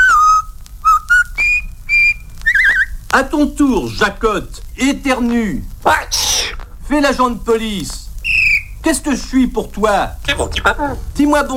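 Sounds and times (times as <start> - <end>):
whistled march tune: 0.0 - 2.9, 8.2 - 8.7
speech: 3.2 - 6.2, 6.9 - 8.0, 8.8 - 11.5.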